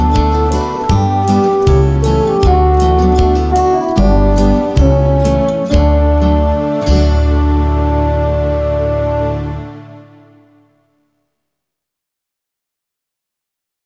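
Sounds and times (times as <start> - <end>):
instrumental music: 0.0 - 11.0.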